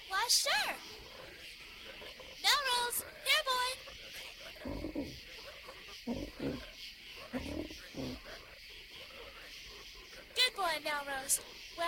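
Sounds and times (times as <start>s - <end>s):
steady hiss: 0.0s - 11.8s
speech: 0.1s - 1.2s, 2.0s - 4.8s, 10.8s - 11.8s
big frog croaking: 0.9s - 10.4s.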